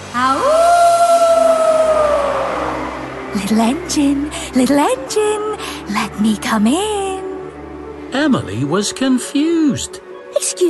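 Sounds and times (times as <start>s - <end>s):
howling storm wind: 0.0s - 5.4s
speech: 0.2s - 0.5s, 3.4s - 7.0s, 8.2s - 10.6s.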